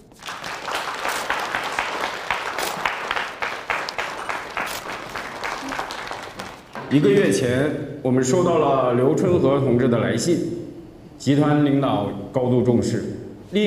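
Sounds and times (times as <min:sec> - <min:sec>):
audience applause: 0:00.0 - 0:07.4
speech: 0:06.9 - 0:10.6, 0:11.2 - 0:13.6.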